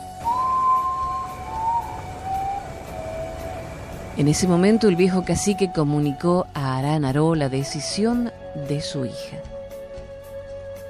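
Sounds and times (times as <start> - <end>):
common potoo mournful call: 0.2 - 6.0
speech: 4.2 - 9.6.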